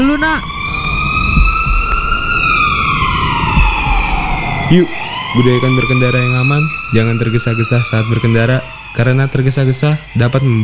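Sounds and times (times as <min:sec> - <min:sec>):
ambulance siren: 0:00.0 - 0:10.6
speech: 0:04.7 - 0:10.6.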